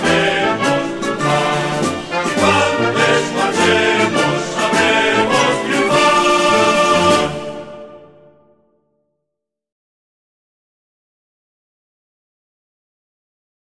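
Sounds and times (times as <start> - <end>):
anthem music: 0.0 - 8.8.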